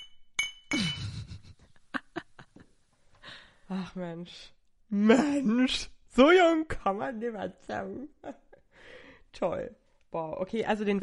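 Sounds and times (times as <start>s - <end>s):
wine glasses clinking in a toast: 0.0s - 1.2s
speech: 3.7s - 8.4s, 9.4s - 11.0s.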